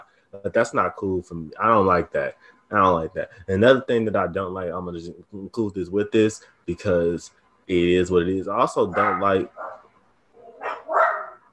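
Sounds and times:
speech: 0.3s - 9.7s
dog barking: 8.9s - 11.5s.

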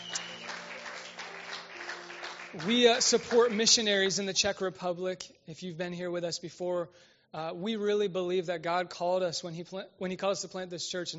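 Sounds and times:
church congregation applauding a guest during a Sunday morning service: 0.0s - 4.2s
speech: 2.5s - 11.1s.

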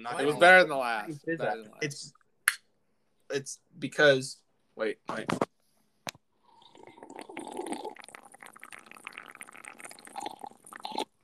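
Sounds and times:
speech: 0.0s - 2.2s, 3.3s - 5.5s
slurping a drink of soda: 6.5s - 11.2s.

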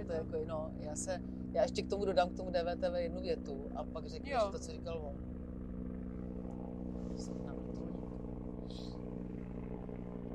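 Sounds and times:
speech: 0.0s - 5.3s, 7.1s - 7.9s
helicopter flying overhead: 0.0s - 10.3s.

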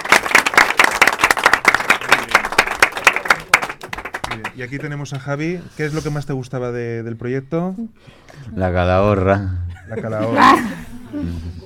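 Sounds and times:
audience applause: 0.0s - 5.0s
speech: 4.4s - 11.6s.

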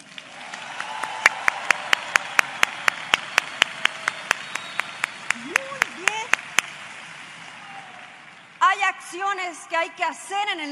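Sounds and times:
audience applause: 0.0s - 8.5s
speech: 9.5s - 10.7s.

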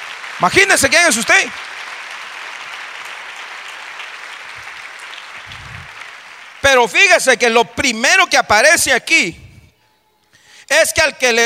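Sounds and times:
audience applause: 0.0s - 7.1s
speech: 0.4s - 1.7s, 6.7s - 9.4s, 10.7s - 11.4s.

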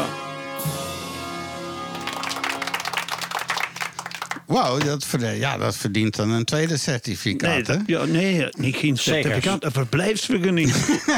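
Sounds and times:
audience applause: 1.9s - 4.8s
speech: 4.5s - 11.1s
laughter: 10.6s - 11.1s.

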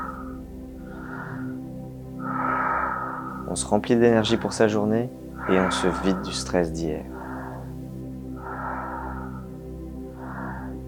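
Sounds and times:
slow deep breaths during a guided breathing exercise: 0.0s - 10.8s
steady low hum: 0.0s - 10.8s
speech: 3.5s - 7.2s.

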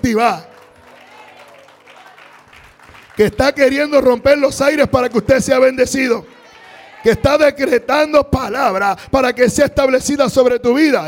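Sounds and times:
speech: 0.0s - 0.5s, 3.2s - 6.4s, 7.0s - 11.0s
one person clapping: 0.5s - 3.2s.

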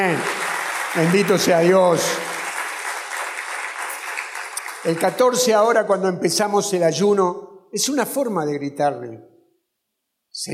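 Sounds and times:
speech: 0.0s - 2.3s, 4.8s - 9.3s, 10.4s - 10.5s
audience applauding: 0.0s - 5.7s.

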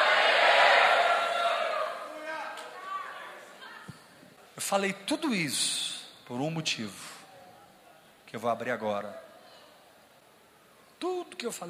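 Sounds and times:
large crowd shouting a victory cry: 0.0s - 3.6s
speech: 4.6s - 7.1s, 8.3s - 9.2s, 11.0s - 11.6s.

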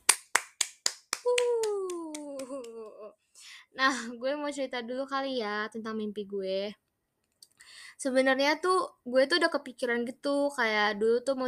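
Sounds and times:
sharp claps or snaps: 0.0s - 2.9s
speech: 3.8s - 6.8s, 8.0s - 11.4s.

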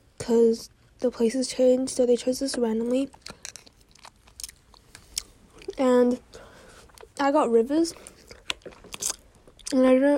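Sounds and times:
speech: 0.3s - 3.4s, 5.8s - 6.4s, 7.2s - 8.1s, 9.7s - 10.1s
chewing honeycomb: 3.1s - 5.8s, 8.0s - 10.1s.

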